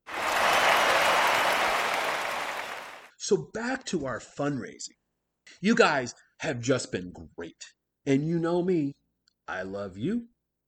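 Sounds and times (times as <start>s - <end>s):
crowd applause: 0.0s - 3.1s
speech: 3.2s - 10.3s.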